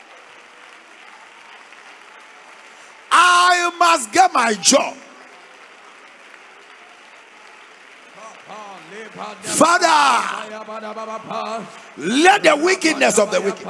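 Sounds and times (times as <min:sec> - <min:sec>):
audience clapping: 0:00.0 - 0:13.6
speech: 0:03.7 - 0:05.0, 0:09.3 - 0:13.6.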